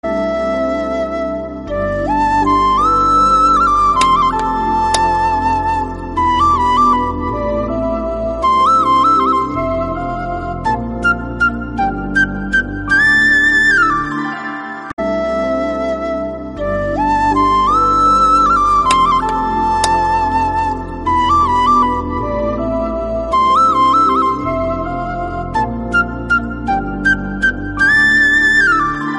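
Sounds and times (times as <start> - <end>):
flute: 0.0 - 29.1.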